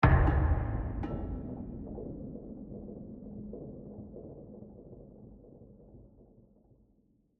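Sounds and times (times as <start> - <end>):
tension music: 0.0 - 2.8.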